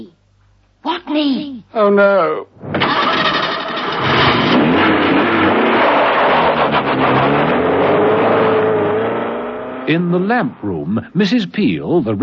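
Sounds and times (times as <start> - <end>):
speech: 0.8 - 3.0, 9.9 - 12.2
car engine starting up and revving: 2.8 - 10.6.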